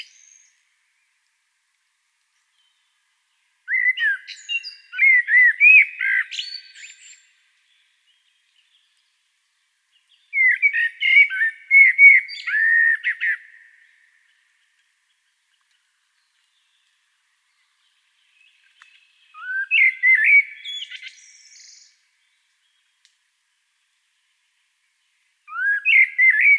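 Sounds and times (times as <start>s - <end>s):
Common blackbird mellow whistling song: 0.0s - 0.6s, 3.7s - 8.9s, 10.1s - 13.9s, 18.4s - 22.1s, 25.5s - 26.5s.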